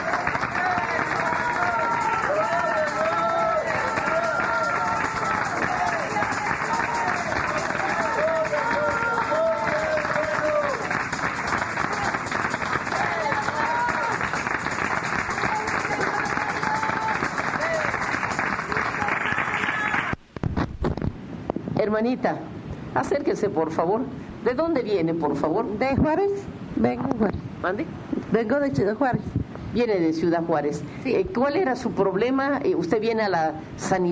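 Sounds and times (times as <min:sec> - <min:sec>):
audience applause: 0:00.0 - 0:20.2
voices calling and cheering: 0:00.0 - 0:20.2
speech: 0:21.9 - 0:34.1.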